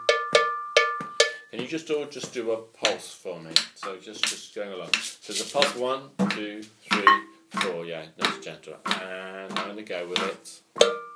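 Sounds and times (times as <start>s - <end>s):
bell pattern ringing: 0.0s - 1.6s, 7.0s - 7.4s
speech: 1.6s - 11.0s.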